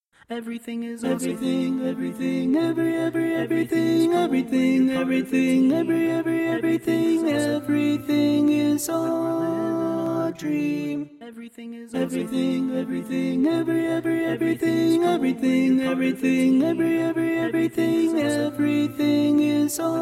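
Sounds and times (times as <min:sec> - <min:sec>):
barbershop baritone singing: 0:00.3 - 0:19.9.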